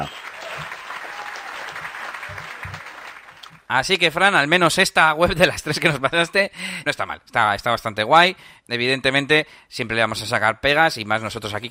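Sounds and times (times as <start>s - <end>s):
applause sound effect: 0.0s - 3.7s
speech: 3.7s - 11.6s.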